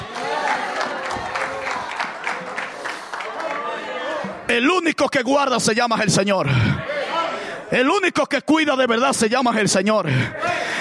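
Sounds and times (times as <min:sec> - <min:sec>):
audience applauding: 0:00.0 - 0:04.3
speech: 0:04.5 - 0:06.9, 0:07.7 - 0:10.8.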